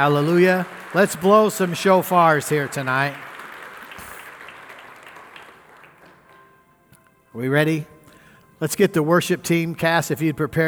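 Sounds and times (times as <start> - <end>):
speech: 0.0 - 3.3, 7.4 - 7.9, 8.6 - 10.6
audience clapping hands: 0.0 - 6.4.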